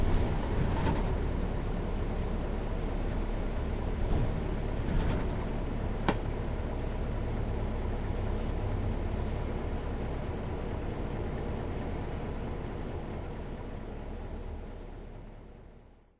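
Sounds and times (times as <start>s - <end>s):
Hino U-RU1FRAA vehicle running in Sendai: 0.0s - 15.5s.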